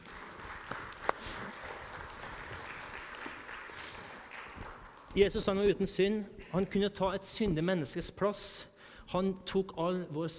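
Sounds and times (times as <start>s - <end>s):
audience clapping: 0.0s - 5.7s
speech: 5.2s - 10.3s.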